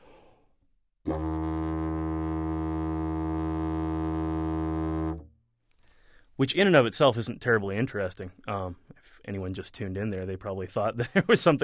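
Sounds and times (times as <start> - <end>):
didgeridoo basic drone from buzzing lips: 1.1 - 5.3
speech: 6.4 - 11.6.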